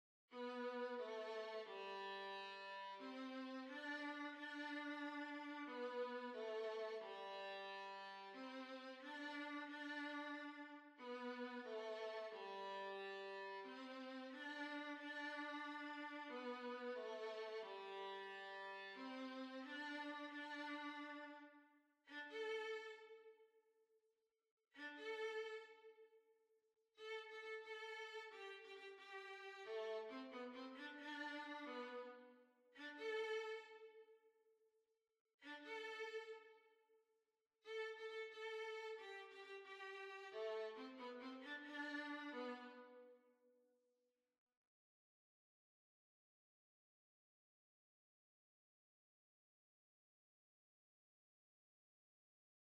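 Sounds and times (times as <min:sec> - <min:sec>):
violin: 0:00.3 - 0:23.3, 0:24.8 - 0:26.0, 0:27.0 - 0:34.1, 0:35.4 - 0:36.7, 0:37.7 - 0:43.2.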